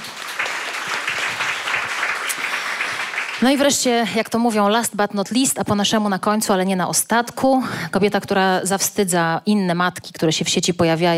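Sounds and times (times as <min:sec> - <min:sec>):
audience applause: 0:00.0 - 0:03.7
speech: 0:03.4 - 0:11.1.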